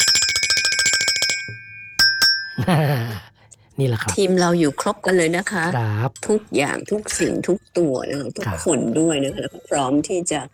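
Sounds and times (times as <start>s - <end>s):
small metal bell ringing: 0.0s - 2.7s
speech: 2.6s - 10.5s.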